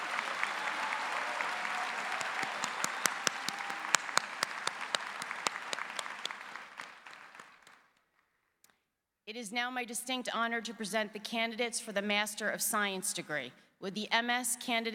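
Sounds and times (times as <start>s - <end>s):
large audience applauding graduates in a big room: 0.0s - 7.9s
speech: 9.4s - 14.9s.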